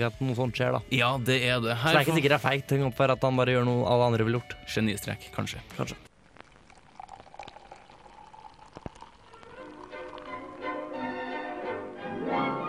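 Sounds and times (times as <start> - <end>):
speech: 0.0 - 6.1
beer being poured: 6.1 - 11.4.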